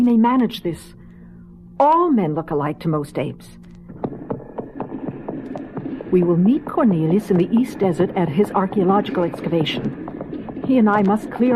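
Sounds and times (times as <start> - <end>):
speech: 0.0 - 1.0, 1.8 - 3.7, 6.1 - 10.0, 10.7 - 11.5
low hum: 0.0 - 11.5
hooves of a horse pulling a wagon clip-clopping at night: 4.0 - 11.5.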